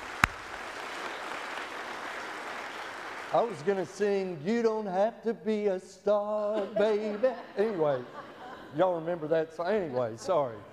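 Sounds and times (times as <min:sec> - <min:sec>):
audience applause: 0:00.0 - 0:03.7
speech: 0:03.3 - 0:10.7
laughter: 0:06.3 - 0:10.6.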